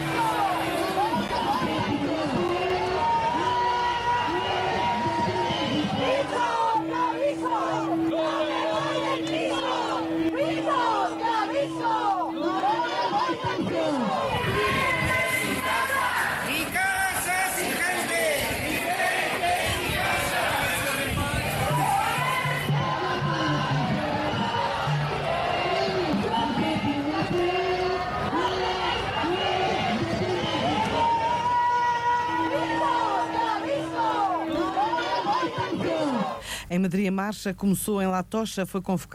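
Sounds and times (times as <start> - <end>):
steady droning tone: 0.0 - 36.4
large protest crowd shouting and chanting in the street: 0.0 - 36.6
speech: 36.8 - 39.1.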